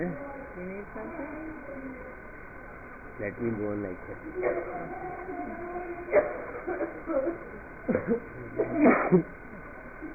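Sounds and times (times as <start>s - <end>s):
speech: 0.0s - 2.2s, 3.2s - 9.4s
sneezes: 6.1s - 6.5s, 7.9s - 9.2s.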